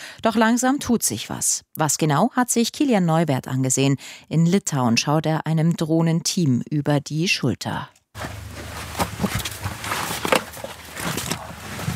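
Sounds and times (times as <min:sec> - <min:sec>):
speech: 0:00.2 - 0:08.4
footsteps walking down steps: 0:08.2 - 0:11.9.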